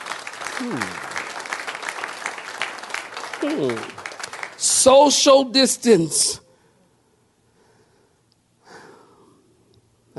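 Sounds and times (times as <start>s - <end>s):
audience clapping hands: 0.0s - 5.2s
speech: 0.6s - 1.1s, 3.4s - 4.0s, 4.6s - 6.4s.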